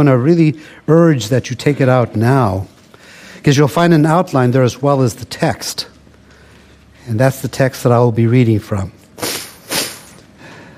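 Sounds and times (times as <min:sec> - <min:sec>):
speech: 0:00.0 - 0:02.7, 0:03.4 - 0:05.9, 0:07.1 - 0:09.3
sniffle: 0:09.2 - 0:10.2.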